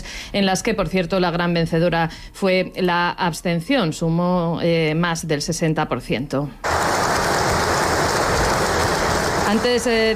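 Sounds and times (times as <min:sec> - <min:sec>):
speech: 0:00.3 - 0:06.7, 0:09.5 - 0:10.1
applause for King Mohammed VI: 0:06.7 - 0:10.0.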